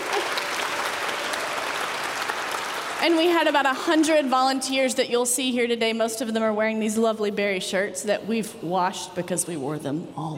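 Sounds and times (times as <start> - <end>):
audience clapping: 0.0 - 4.5
speech: 3.0 - 10.3.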